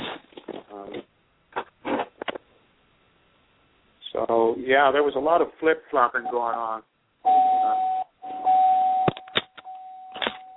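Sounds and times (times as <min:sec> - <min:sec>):
clicks and crackles on the telephone line: 0:00.0 - 0:02.5
speech: 0:04.5 - 0:06.9
telephone line beep marking an incoming radio caller: 0:07.3 - 0:10.5.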